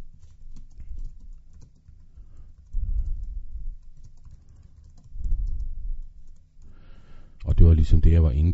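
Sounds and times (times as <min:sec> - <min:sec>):
typing on a computer keyboard: 0:00.1 - 0:06.7
speech: 0:07.8 - 0:08.5.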